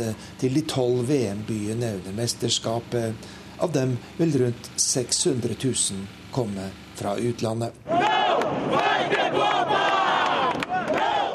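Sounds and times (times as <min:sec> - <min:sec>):
speech: 0:00.0 - 0:09.4
protesters chanting a slogan at a demonstration: 0:07.9 - 0:11.3.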